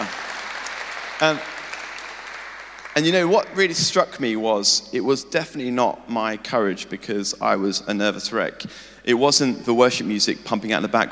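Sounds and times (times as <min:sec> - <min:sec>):
audience applause: 0:00.0 - 0:03.7
speech: 0:01.2 - 0:01.5, 0:03.0 - 0:11.0.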